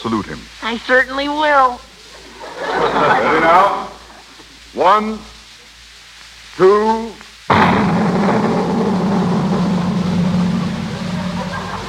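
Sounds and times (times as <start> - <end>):
speech: 0.0 - 1.9, 2.6 - 3.9, 4.7 - 5.3, 6.6 - 7.2
laughter: 2.0 - 4.4, 10.8 - 11.8
cannon blast: 7.5 - 11.8.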